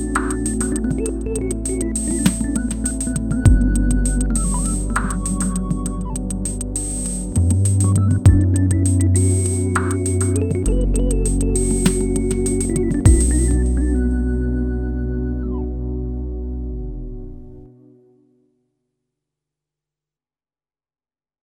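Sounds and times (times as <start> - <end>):
MS20 synthesizer: 0.0 - 18.5.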